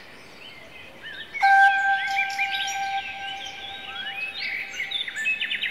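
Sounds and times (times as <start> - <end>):
hypnotic therapy music: 1.4 - 5.6.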